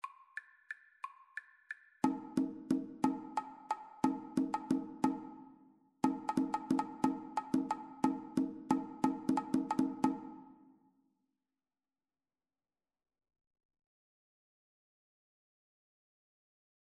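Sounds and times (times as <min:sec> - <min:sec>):
two-part rhythm: 0:00.0 - 0:05.4, 0:06.0 - 0:10.4.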